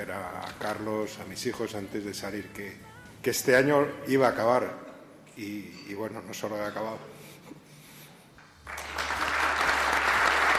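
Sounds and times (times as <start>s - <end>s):
speech: 0.1s - 7.6s
applause: 8.6s - 10.5s.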